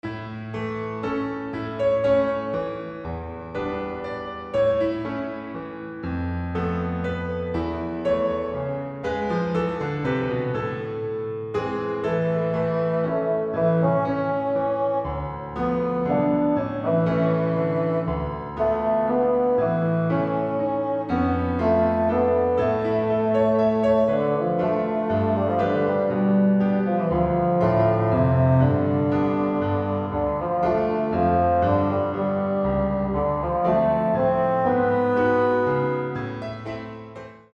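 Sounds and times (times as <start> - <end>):
piano: 0.0 - 37.5
bassoon: 11.9 - 36.4.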